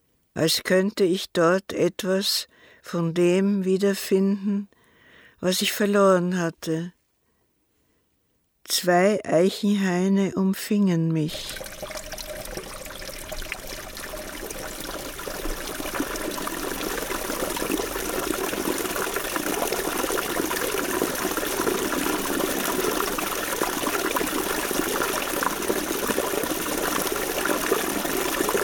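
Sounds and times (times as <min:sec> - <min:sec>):
speech: 0:00.4 - 0:04.8, 0:05.4 - 0:07.0, 0:08.7 - 0:12.0
flowing gushing water: 0:11.3 - 0:28.6.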